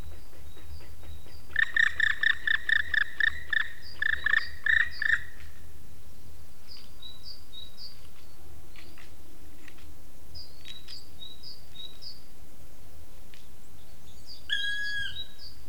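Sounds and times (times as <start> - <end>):
black woodpecker loud plaintive ringing call: 1.5 - 5.4, 14.5 - 15.4.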